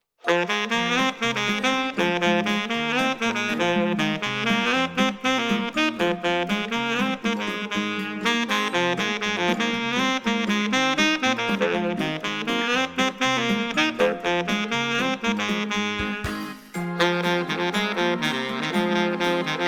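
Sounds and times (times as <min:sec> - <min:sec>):
saxophone cover: 0:00.2 - 0:19.6.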